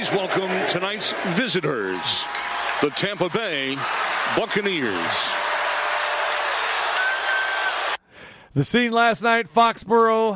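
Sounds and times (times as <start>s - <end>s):
speech: 0.0s - 5.5s, 8.5s - 10.3s
huge stadium crowd cheering and applauding: 0.0s - 8.0s.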